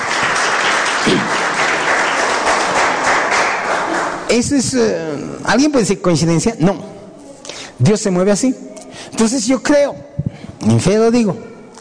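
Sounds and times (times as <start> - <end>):
church congregation applauding in praise of God: 0.0 - 4.5
speech: 4.3 - 7.0, 7.8 - 11.5.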